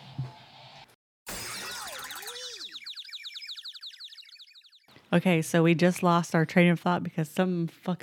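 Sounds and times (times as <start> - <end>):
electronic alarm playing a novelty tune: 1.3 - 4.9
speech: 5.1 - 8.0.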